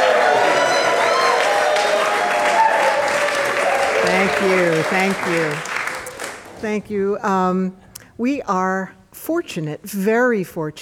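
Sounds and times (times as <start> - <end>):
crowd voices cheering: 0.0 - 4.9
live audience applause: 0.0 - 6.6
speech: 4.1 - 5.7, 6.6 - 10.8.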